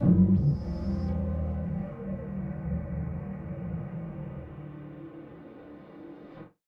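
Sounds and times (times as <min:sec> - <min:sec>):
malfunctioning synth: 0:00.0 - 0:03.7.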